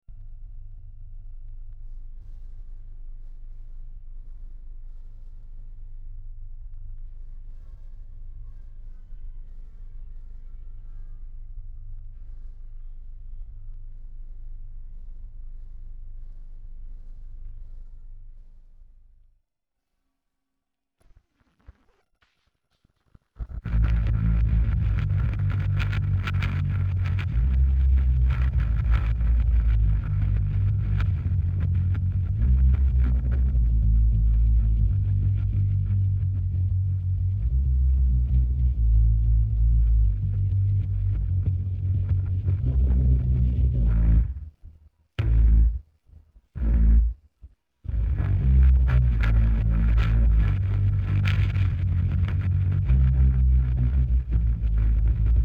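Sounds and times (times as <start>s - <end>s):
bass: 0.0s - 19.4s, 23.4s - 55.4s.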